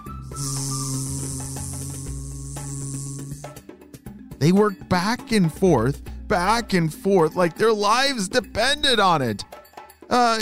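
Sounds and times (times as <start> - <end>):
bees buzzing around flowers: 0.0 - 3.6
speech: 0.3 - 0.8, 4.4 - 9.5, 10.1 - 10.4.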